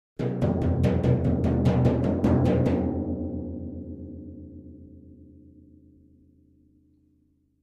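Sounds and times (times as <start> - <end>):
symphonic finale timpani accent hits played by hand: 0.2 - 4.6.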